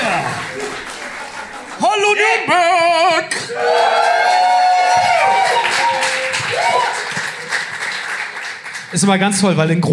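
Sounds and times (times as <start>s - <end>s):
scattered audience claps: 0.0s - 2.4s, 4.0s - 9.6s
live audience crowd cheering: 0.0s - 9.2s
speech: 2.1s - 4.5s, 8.9s - 9.9s
individual audience voices whooping and yelling: 3.4s - 7.0s.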